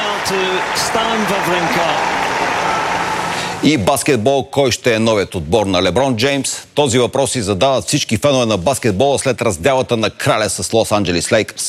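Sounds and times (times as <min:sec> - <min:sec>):
spectators' ovation: 0:00.0 - 0:03.7
speech: 0:00.3 - 0:03.0, 0:03.6 - 0:11.6.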